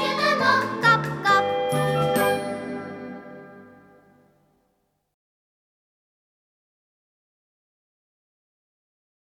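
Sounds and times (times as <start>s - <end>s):
children's choir singing: 0.0s - 3.4s.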